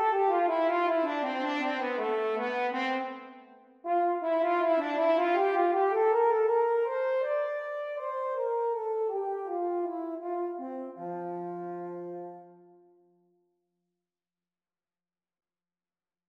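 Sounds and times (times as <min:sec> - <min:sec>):
French horn duets: 0:00.0 - 0:12.6.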